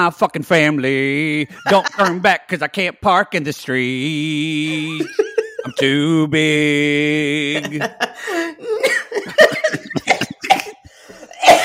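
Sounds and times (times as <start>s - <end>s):
speech: 0.0s - 9.6s
laughter: 1.4s - 2.4s, 4.5s - 6.2s, 6.8s - 11.4s
person coughing after choking on spittle: 1.5s - 2.2s, 7.6s - 11.6s.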